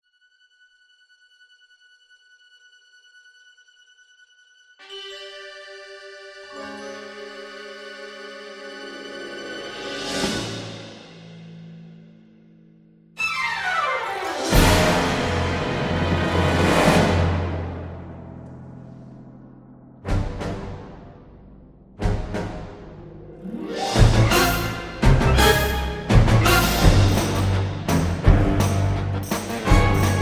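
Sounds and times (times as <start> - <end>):
orchestral arrangement: 4.8 - 11.6, 13.2 - 19.2, 20.0 - 21.4, 22.0 - 30.2.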